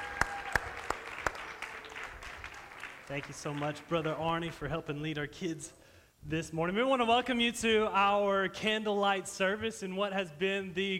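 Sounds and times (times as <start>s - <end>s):
audience applause: 0.0s - 4.6s
speech: 3.1s - 10.9s.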